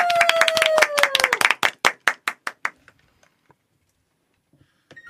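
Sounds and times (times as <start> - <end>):
audience applause: 0.0 - 2.8.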